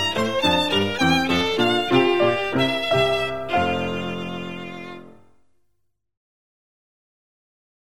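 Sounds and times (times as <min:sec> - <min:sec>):
violin: 0:00.0 - 0:05.4.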